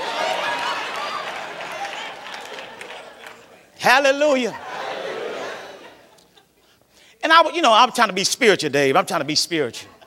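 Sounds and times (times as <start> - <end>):
audience clapping: 0.0 - 3.7
laughter: 0.0 - 6.7, 9.7 - 10.0
speech: 3.8 - 4.7, 7.3 - 9.9.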